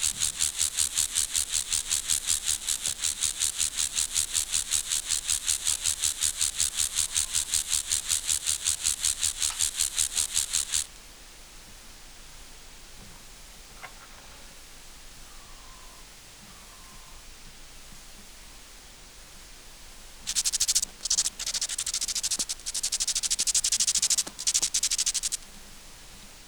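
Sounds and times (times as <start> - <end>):
Chorthippus grasshopper raspy song: 0.0 - 10.9, 20.3 - 25.4.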